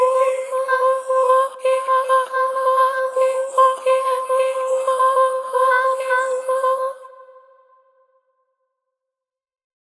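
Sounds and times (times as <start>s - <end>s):
scattered processed vocal sample effects: 0.0s - 7.4s.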